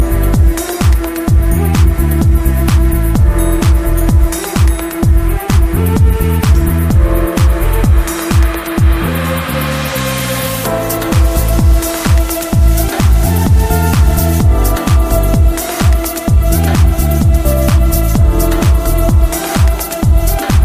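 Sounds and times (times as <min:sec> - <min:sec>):
suitcase piano: 0:00.0 - 0:20.6.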